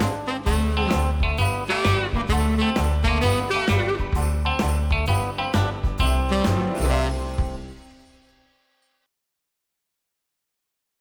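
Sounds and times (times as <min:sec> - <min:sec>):
backing track: 0:00.0 - 0:08.3.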